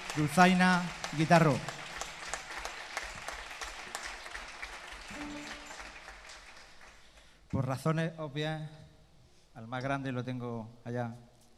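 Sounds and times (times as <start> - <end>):
audience applause: 0.0 - 7.3
speech: 0.2 - 1.8, 7.5 - 8.8, 9.6 - 11.3.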